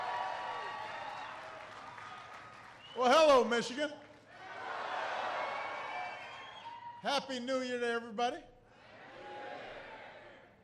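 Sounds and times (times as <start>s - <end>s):
audience applause at a rally in Michigan: 0.0s - 3.0s, 4.4s - 6.9s
speech: 3.0s - 4.0s, 7.0s - 8.5s.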